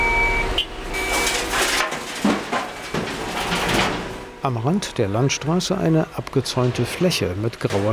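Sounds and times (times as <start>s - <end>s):
trucks reversing at a construction site: 0.0s - 7.9s
speech: 4.4s - 7.9s.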